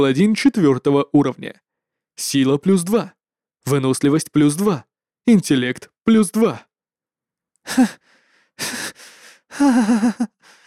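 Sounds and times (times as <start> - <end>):
speech: 0.0 - 1.6, 2.2 - 6.7, 7.6 - 10.6
heavy breathing: 7.7 - 10.6.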